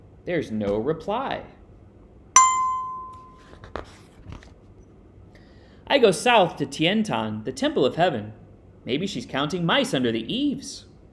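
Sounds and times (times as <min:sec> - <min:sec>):
speech: 0:00.2 - 0:01.6, 0:05.9 - 0:10.9
bicycle bell ringing: 0:02.4 - 0:03.4.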